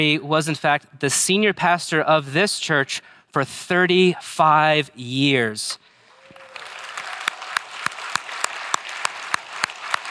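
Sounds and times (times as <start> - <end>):
speech: 0.0 - 5.9
audience clapping: 6.0 - 10.0.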